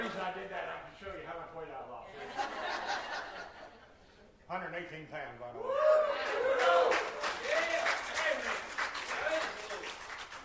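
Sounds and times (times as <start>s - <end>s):
laughter: 2.1s - 4.1s
speech: 4.5s - 7.1s
audience clapping: 6.2s - 10.4s.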